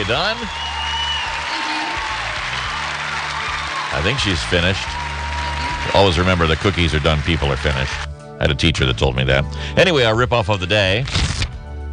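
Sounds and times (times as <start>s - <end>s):
speech: 0.0s - 0.7s, 3.9s - 5.0s, 6.0s - 11.3s
audience applause on a played recording: 0.0s - 8.1s.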